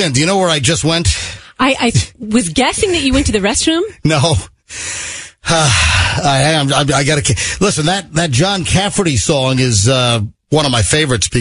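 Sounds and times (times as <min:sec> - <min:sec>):
speech: 0:00.0 - 0:11.3
heavy breathing from someone who has just run to the car: 0:01.1 - 0:01.6, 0:04.6 - 0:06.4, 0:07.3 - 0:07.6.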